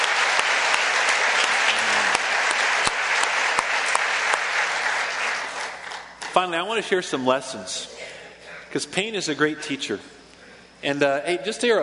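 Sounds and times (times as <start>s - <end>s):
audience applause: 0.0s - 6.2s
speech: 6.4s - 8.0s, 8.7s - 10.2s, 10.8s - 11.8s.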